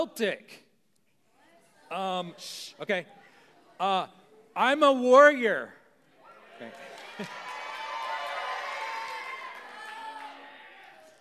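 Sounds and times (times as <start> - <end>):
speech: 0.0 - 0.6, 1.9 - 3.2, 3.8 - 5.8, 6.6 - 7.4
audience shouting out with whoops and cheering: 6.0 - 11.1
laughter: 6.8 - 7.7.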